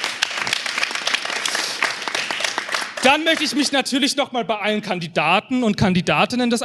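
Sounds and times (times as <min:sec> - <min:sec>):
audience applause at a live competition evening: 0:00.0 - 0:03.8
speech: 0:03.1 - 0:06.6.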